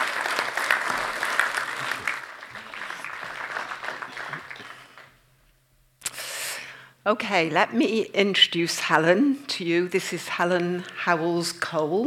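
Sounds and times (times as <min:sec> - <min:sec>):
audience applause: 0:00.0 - 0:05.2
speech: 0:07.1 - 0:12.0.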